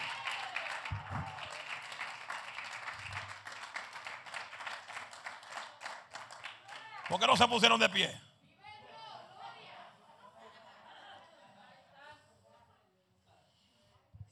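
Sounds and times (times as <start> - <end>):
audience applause: 0.0 - 8.1
speech: 7.1 - 8.3
laughter: 9.4 - 12.4.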